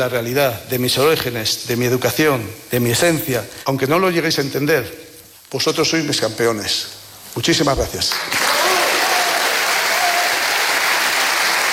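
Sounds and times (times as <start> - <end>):
speech: 0.0 - 8.4
thunderous ovation from a large audience: 8.1 - 11.7.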